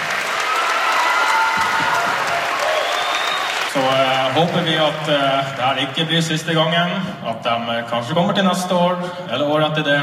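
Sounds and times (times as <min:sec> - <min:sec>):
applause: 0:00.0 - 0:06.5
speech: 0:03.8 - 0:10.0.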